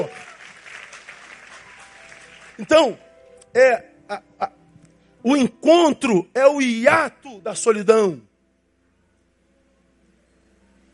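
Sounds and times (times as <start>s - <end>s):
speech: 0.0s - 0.3s, 2.6s - 4.6s, 5.2s - 8.3s
applause: 0.0s - 3.0s.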